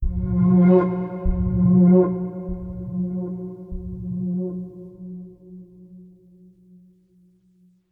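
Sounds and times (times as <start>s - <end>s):
mysterious string music: 0.0s - 5.8s.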